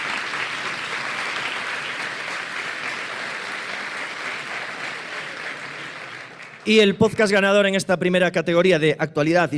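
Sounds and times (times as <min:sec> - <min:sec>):
audience applause for nominees: 0:00.0 - 0:06.9
speech: 0:06.6 - 0:09.5.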